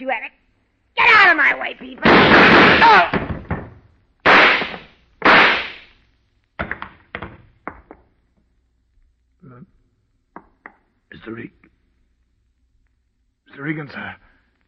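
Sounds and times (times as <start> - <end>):
speech: 1.7 - 3.2, 11.3 - 11.6, 13.6 - 14.2
gunshots during a confrontation: 2.0 - 3.3, 4.2 - 5.9.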